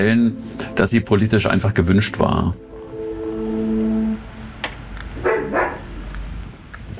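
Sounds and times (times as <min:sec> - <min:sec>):
speech: 0:00.0 - 0:02.7
steady buzzing door intercom tone: 0:02.4 - 0:04.7
dogs barking at visitor arriving: 0:05.2 - 0:05.9.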